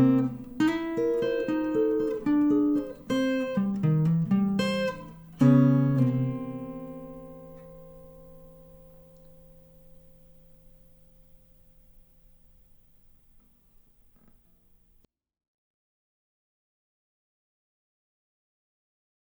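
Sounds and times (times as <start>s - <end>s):
blues music: 0.0s - 12.6s.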